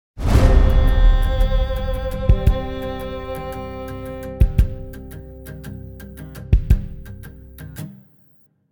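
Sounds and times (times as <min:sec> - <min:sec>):
tense music loop at 113 bpm: 0:00.7 - 0:06.2.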